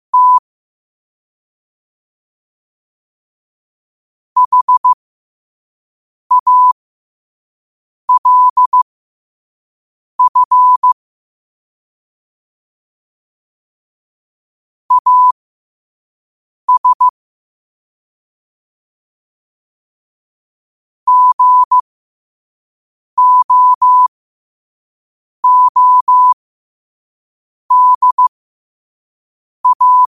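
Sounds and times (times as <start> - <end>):
morse code at 5 wpm: 0.1 - 0.4, 4.4 - 5.0, 6.3 - 6.8, 8.1 - 8.8, 10.2 - 11.0, 14.9 - 15.4, 16.7 - 17.1, 21.1 - 21.8, 23.2 - 24.1, 25.4 - 26.4, 27.7 - 28.3, 29.6 - 30.0.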